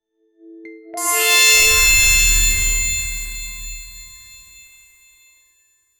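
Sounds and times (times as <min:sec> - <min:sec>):
mystical mana restoration healing sound: 0:01.0 - 0:04.8.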